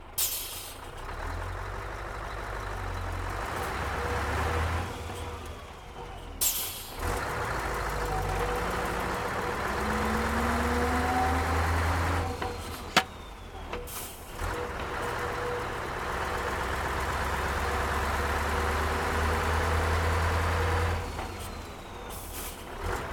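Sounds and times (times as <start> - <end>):
1990 Scania R143HL truck engine starting driving reversing and stopping: 0.0 - 23.1.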